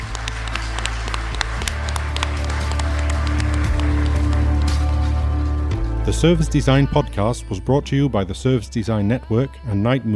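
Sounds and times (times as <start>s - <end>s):
audience applause: 0.0s - 5.7s
speech: 6.1s - 10.1s.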